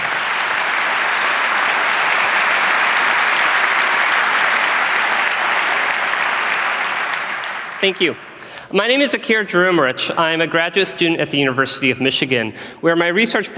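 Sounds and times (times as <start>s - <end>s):
audience applause: 0.0s - 8.4s
speech: 7.8s - 13.5s.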